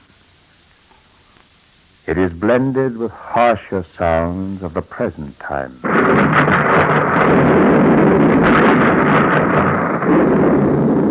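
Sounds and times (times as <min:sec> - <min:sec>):
speech: 0:02.1 - 0:08.8
depth charges dropped by destroyers exploding: 0:04.1 - 0:11.0
guns firing: 0:05.8 - 0:11.0.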